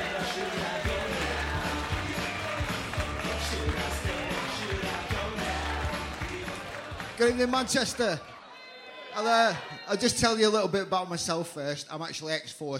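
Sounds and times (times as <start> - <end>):
audience applause for comedian: 0.0 - 9.8
speech: 7.2 - 8.3, 9.2 - 12.7.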